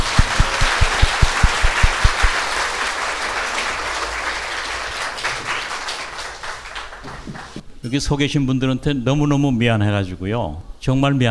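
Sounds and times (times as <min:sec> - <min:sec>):
audience applause: 0:00.0 - 0:07.6
speech: 0:07.9 - 0:11.2.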